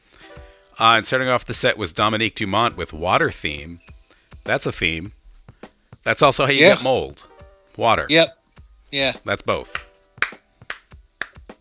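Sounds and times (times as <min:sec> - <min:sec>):
speech: 0:00.8 - 0:03.9, 0:04.5 - 0:05.2, 0:06.0 - 0:09.8
hand clapping: 0:09.6 - 0:11.5.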